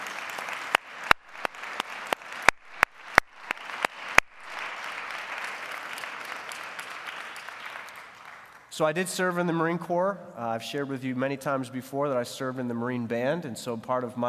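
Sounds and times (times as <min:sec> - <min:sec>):
audience applause: 0:00.0 - 0:08.7
speech: 0:08.8 - 0:14.2.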